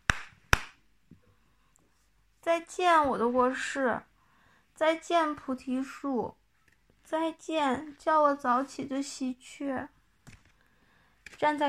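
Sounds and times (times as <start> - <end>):
hand claps echoing in an empty room: 0.0 - 0.8
speech: 2.4 - 4.1, 4.8 - 6.4, 7.1 - 10.0, 11.4 - 11.6.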